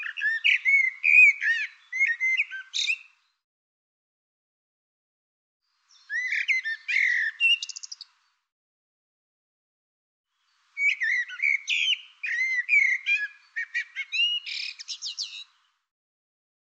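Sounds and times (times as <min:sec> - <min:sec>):
bird singing bright phrases of varied whistles and chirps: 0:00.0 - 0:03.4, 0:05.9 - 0:08.2, 0:10.8 - 0:15.6.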